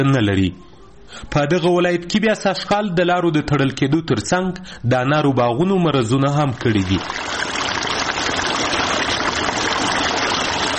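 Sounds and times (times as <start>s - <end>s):
speech: 0.0s - 7.6s
irrigation water flowing through a pomegranate orchard in Sepidkhar near Tarinkot: 6.6s - 10.7s.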